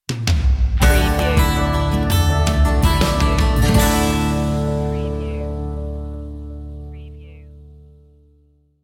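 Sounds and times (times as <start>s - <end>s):
music sting: 0.8s - 6.6s.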